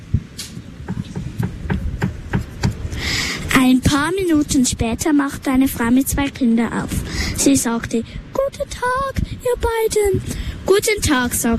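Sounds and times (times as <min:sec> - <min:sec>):
knocking on a wooden door: 0:00.9 - 0:02.8
speech: 0:03.6 - 0:11.5.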